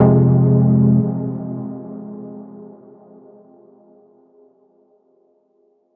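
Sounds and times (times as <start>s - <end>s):
dub techno chord stab in F: 0.0s - 2.8s
noise: 0.0s - 5.9s.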